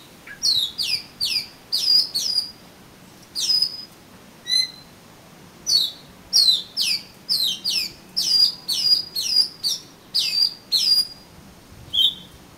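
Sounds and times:
Oriental magpie-robin whistling: 0.2s - 2.6s, 3.4s - 4.9s, 5.6s - 11.2s, 11.9s - 12.4s.

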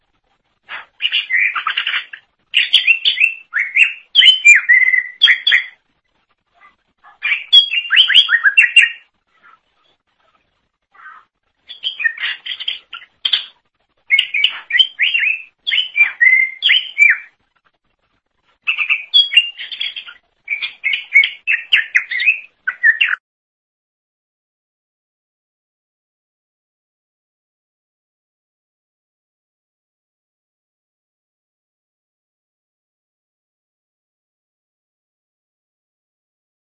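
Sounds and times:
leafbird song: 0.6s - 17.7s, 18.5s - 23.2s.

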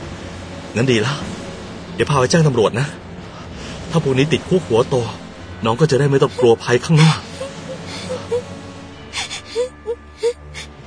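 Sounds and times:
speech: 0.7s - 1.3s, 2.0s - 3.0s, 3.9s - 7.2s
child crying after a fright: 6.3s - 8.5s, 9.1s - 10.7s.

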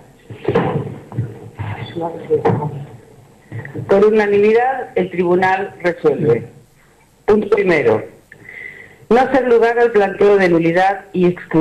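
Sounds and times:
door being shut at a court hearing: 0.3s - 2.9s
speech: 2.0s - 3.0s, 3.7s - 6.6s, 7.3s - 8.1s, 9.1s - 11.5s.

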